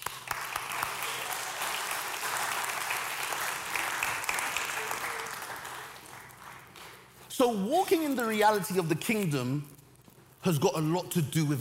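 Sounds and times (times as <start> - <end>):
audience applause for volunteers: 0.0 - 7.2
speech: 7.4 - 9.8, 10.4 - 11.5.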